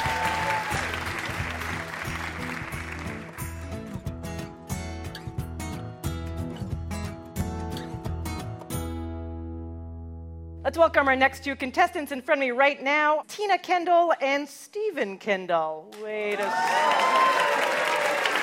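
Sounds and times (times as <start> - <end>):
audience applause for quiz show contestants: 0.0 - 3.7, 16.3 - 18.4
rhythmic tonal show music: 0.0 - 9.0
speech: 10.7 - 17.1.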